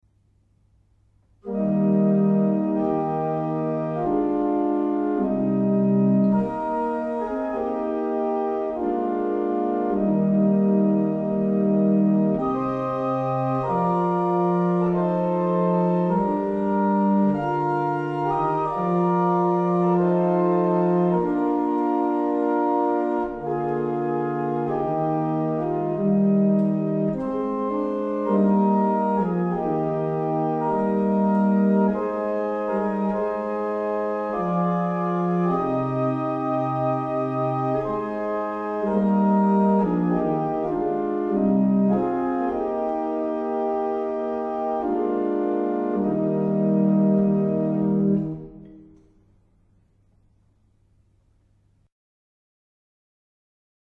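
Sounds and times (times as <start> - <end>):
barrel organs: 1.4 - 50.4.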